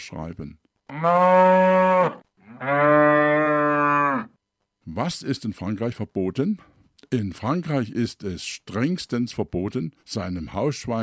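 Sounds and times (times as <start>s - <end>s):
speech: 0.0s - 2.9s, 4.9s - 11.0s
cow mooing: 0.9s - 4.4s.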